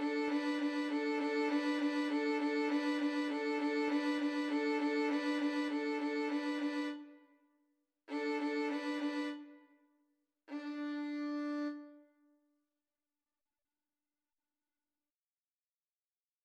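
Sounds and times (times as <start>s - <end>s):
violin duet: 0.0s - 7.1s, 8.1s - 9.5s, 10.5s - 12.0s.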